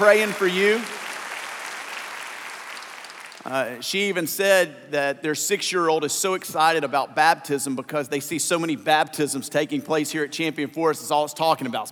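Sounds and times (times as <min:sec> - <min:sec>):
speech: 0:00.0 - 0:01.0, 0:03.4 - 0:11.9
audience applause during a weekend service: 0:00.0 - 0:03.5.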